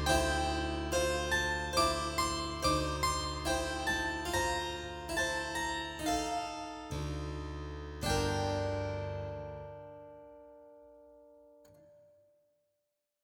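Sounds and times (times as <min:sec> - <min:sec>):
harpsichord: 0:00.0 - 0:10.0.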